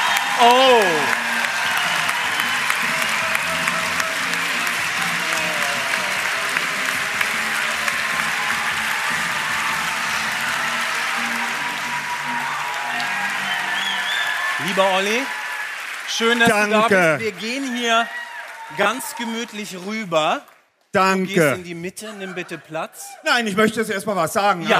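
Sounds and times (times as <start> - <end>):
large audience applause: 0.0 - 20.6
speech: 0.4 - 1.2, 14.8 - 15.4, 16.1 - 24.7
faint crowd murmur: 2.9 - 11.6.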